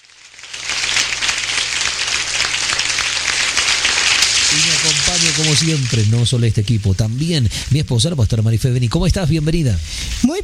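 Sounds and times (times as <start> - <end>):
audience applause: 0.2 - 6.2
speech: 4.6 - 10.4.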